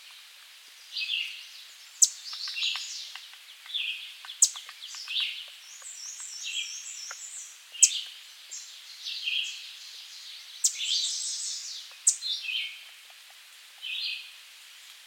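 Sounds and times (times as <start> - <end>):
American redstart song: 0.0 - 15.0.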